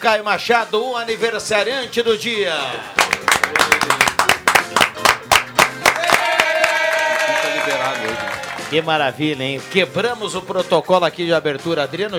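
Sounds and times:
speech: 0.0 - 4.0, 8.7 - 12.1
round of applause from a small group in the studio: 3.0 - 8.8.

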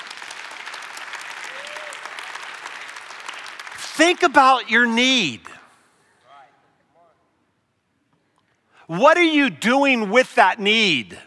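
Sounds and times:
crowd applauding: 0.0 - 5.0
speech: 4.0 - 5.5, 8.9 - 11.2.

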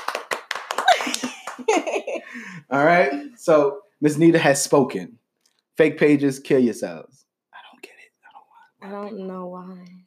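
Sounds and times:
hands clapping: 0.0 - 2.2
laughter: 0.8 - 2.7
speech: 1.7 - 5.2, 5.8 - 7.2, 8.8 - 10.0.

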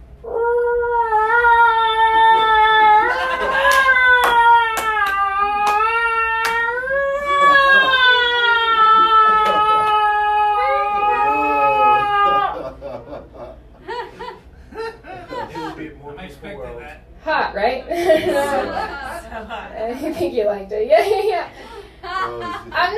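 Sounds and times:
human voice imitating a female cat wailing in heat: 0.2 - 12.7
laughter: 3.0 - 4.0, 9.0 - 10.0, 12.2 - 16.0, 17.9 - 20.3, 20.9 - 22.8.

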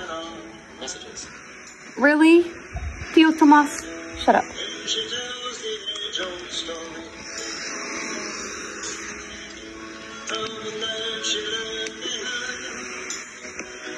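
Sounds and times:
evening campfire crackling: 3.1 - 13.9.

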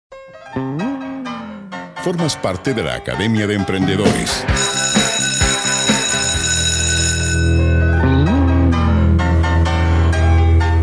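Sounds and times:
upbeat playful music with elegant piano and powerful drums: 0.1 - 10.8
speech: 2.0 - 5.0.

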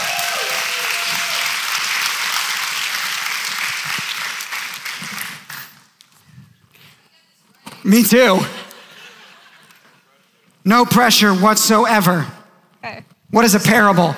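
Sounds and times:
audience applause: 0.0 - 5.8
speech: 7.9 - 8.6, 10.6 - 14.1
laughter: 8.4 - 10.2.

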